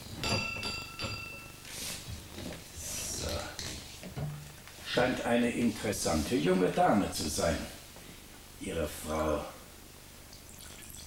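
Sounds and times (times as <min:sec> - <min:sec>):
glasses being taken out and clinking: 0:00.2 - 0:01.7
speech: 0:05.0 - 0:07.8, 0:08.7 - 0:09.6.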